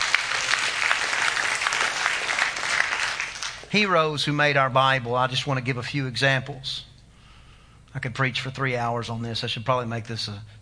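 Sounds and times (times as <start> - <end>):
audience clapping: 0.0 - 3.7
speech: 3.7 - 6.9, 7.9 - 10.6.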